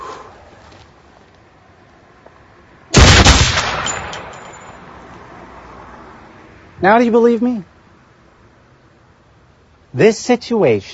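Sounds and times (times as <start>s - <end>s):
gunshot: 3.0s - 4.4s
speech: 6.8s - 7.7s, 10.0s - 10.9s.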